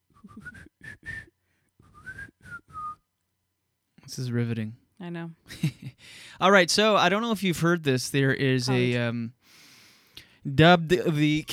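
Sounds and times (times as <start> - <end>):
person whistling a melody mimicking a phone alarm tune: 0.1 - 3.0
speech: 4.1 - 9.6, 10.4 - 11.5.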